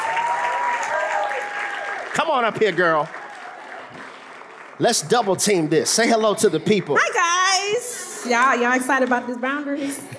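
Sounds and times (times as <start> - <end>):
crowd applauding for a guest: 0.0 - 7.7
speech: 2.2 - 3.2, 4.8 - 10.1.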